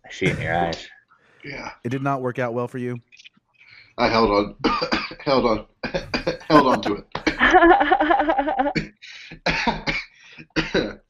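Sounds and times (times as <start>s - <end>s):
speech: 0.1s - 3.1s, 4.0s - 11.0s
weak cough: 4.6s - 5.3s, 5.9s - 7.4s, 8.8s - 11.0s
laughter: 6.0s - 8.8s.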